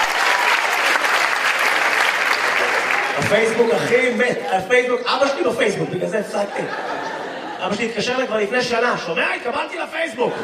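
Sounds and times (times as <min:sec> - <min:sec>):
audience applause: 0:00.0 - 0:04.5
laughter: 0:02.6 - 0:10.4
speech: 0:03.3 - 0:07.0, 0:07.6 - 0:10.4.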